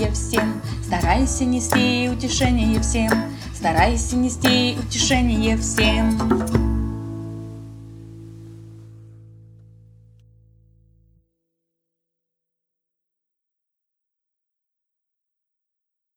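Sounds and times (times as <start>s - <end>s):
Russian song: 0.0s - 8.8s.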